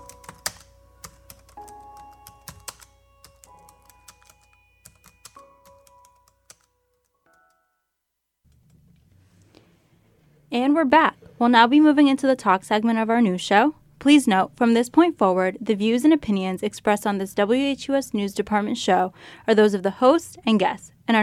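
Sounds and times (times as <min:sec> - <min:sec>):
faint typing on a computer keyboard: 0:00.0 - 0:07.6, 0:08.4 - 0:09.1
speech: 0:10.6 - 0:21.2.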